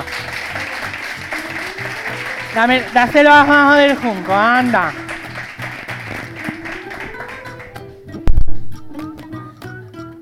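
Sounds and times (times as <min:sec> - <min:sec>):
audience applause: 0:00.0 - 0:07.9
speech: 0:02.6 - 0:05.0.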